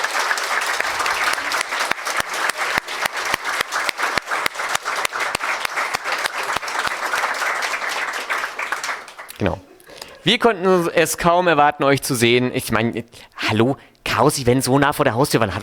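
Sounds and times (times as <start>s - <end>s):
audience applause: 0.0s - 10.2s
speech: 10.2s - 15.6s.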